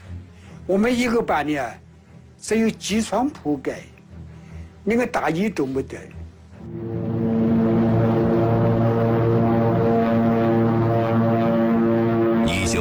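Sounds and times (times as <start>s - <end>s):
speech: 0.7s - 1.8s, 2.4s - 3.9s, 4.8s - 6.9s
roaring airplane engines: 6.6s - 12.8s.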